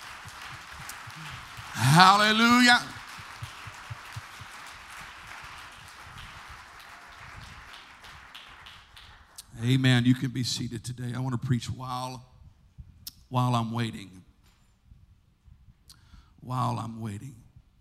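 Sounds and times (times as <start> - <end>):
audience hand clapping: 0.0 - 9.6
speech: 2.0 - 2.9, 9.6 - 12.3, 13.3 - 14.3, 16.4 - 17.4.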